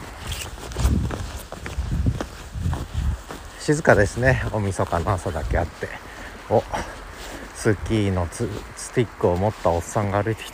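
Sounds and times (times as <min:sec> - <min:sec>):
footsteps on a riverbank path under about 20 cm of snow: 0:00.0 - 0:10.5
speech: 0:03.7 - 0:06.9, 0:07.6 - 0:10.5.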